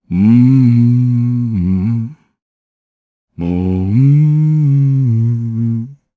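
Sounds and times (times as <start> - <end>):
Japanese voice humming: 0.0 - 2.3, 3.4 - 6.1.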